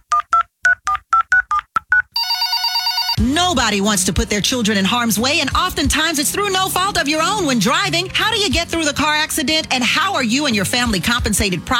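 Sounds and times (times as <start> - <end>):
telephone keypad dialing tones: 0.1 - 3.2
speech: 3.5 - 11.7.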